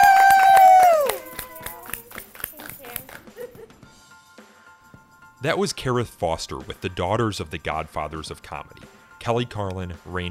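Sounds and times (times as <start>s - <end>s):
audience applause: 0.0s - 2.9s
speech: 5.4s - 10.3s.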